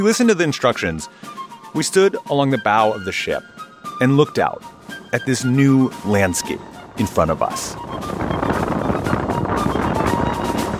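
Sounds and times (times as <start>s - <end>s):
speech: 0.0s - 8.4s
strong wind roaring across a ship's deck: 4.4s - 10.7s.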